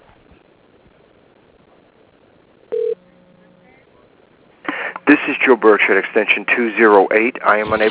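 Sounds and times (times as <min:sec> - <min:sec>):
faint telephone line hiss: 0:00.0 - 0:07.8
telephone tone as a call is transferred to voicemail: 0:02.7 - 0:03.0
speech: 0:05.1 - 0:07.8.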